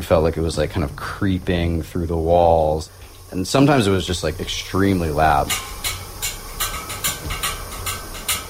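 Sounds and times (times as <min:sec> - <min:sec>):
speech: 0:00.0 - 0:06.0
steam heating pipes hissing: 0:00.0 - 0:08.4.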